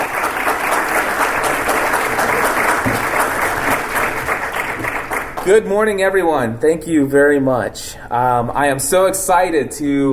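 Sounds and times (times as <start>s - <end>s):
audience applause welcoming keynote speaker: 0.0s - 5.5s
speech: 5.5s - 10.1s.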